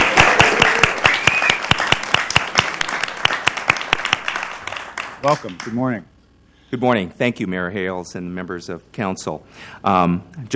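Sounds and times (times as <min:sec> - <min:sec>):
applause after a Portland city council proclamation: 0:00.0 - 0:05.8
speech: 0:05.2 - 0:06.1, 0:06.7 - 0:10.5.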